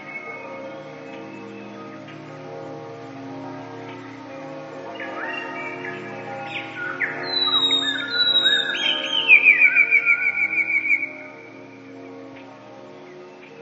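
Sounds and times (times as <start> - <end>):
Eurasian blue tit chirps and trill: 4.9 - 11.8.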